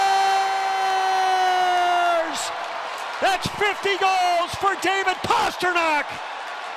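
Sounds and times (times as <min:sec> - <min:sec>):
hockey fans cheering after a goal: 0:00.0 - 0:06.7
speech: 0:03.2 - 0:06.3.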